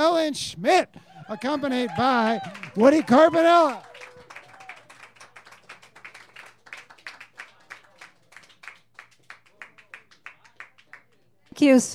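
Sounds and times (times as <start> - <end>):
speech: 0.2 - 3.9, 11.6 - 11.9
audience clapping at an evening open-mic show: 1.2 - 11.6.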